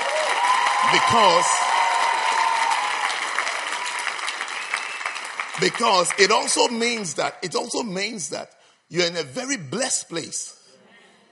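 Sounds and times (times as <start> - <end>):
church audience clapping: 0.0 - 7.4
speech: 0.9 - 1.7, 5.6 - 10.6.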